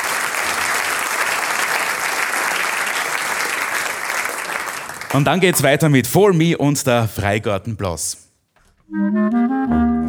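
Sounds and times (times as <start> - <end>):
audience applause: 0.0 - 6.1
speech: 5.1 - 8.2, 8.9 - 10.0.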